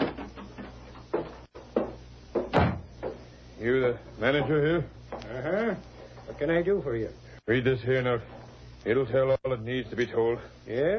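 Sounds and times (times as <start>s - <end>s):
door opening and closing: 0.0s - 3.2s
speech: 3.6s - 10.9s.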